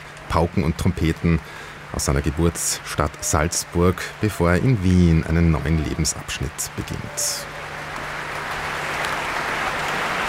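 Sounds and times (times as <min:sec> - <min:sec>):
concert audience applause: 0:00.0 - 0:10.2
speech: 0:00.3 - 0:07.6.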